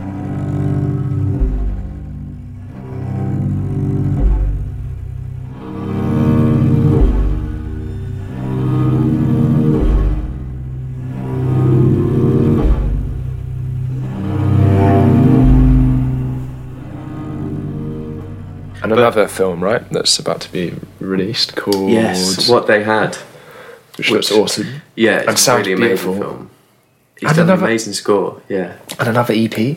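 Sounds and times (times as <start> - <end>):
growly cello playing sustained bowed notes: 0.0 - 22.5
speech: 19.0 - 23.3, 24.0 - 26.5, 27.2 - 29.7.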